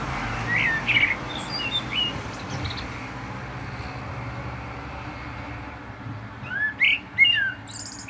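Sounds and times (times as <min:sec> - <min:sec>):
common blackbird singing: 0:00.4 - 0:03.0, 0:06.4 - 0:08.0.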